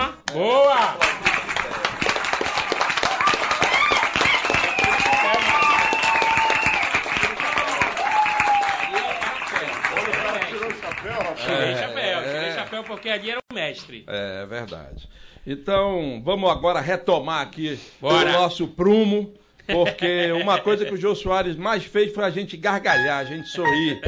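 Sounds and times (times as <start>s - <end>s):
speech: 0.3s - 0.7s, 12.9s - 24.0s
standing applause: 1.0s - 13.2s.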